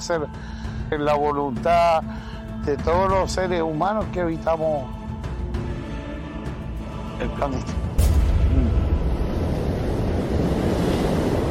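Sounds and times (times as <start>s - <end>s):
speech: 0.1s - 5.0s, 7.2s - 7.8s
gusty wind: 8.0s - 11.4s
sea waves washing in: 8.0s - 11.4s.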